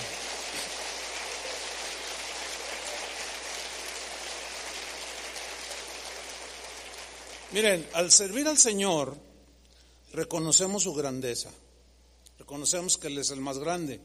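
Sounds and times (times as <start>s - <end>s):
audience applauding: 0.0s - 8.3s
speech: 7.5s - 9.3s, 10.1s - 11.6s, 12.5s - 14.0s.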